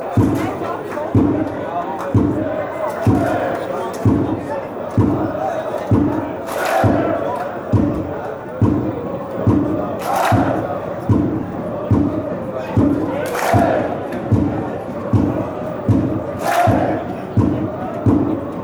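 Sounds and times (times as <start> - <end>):
football songs and soccer chants: 0.0 - 18.6.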